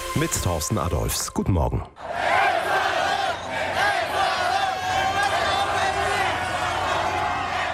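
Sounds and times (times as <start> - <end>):
speech: 0.2 - 2.2
Ecuador football fans celebrating a 2-1 victory over Germany: 2.0 - 7.7.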